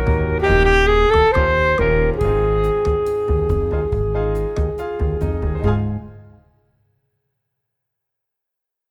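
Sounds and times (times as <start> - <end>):
student saxophone playing: 0.0 - 6.4.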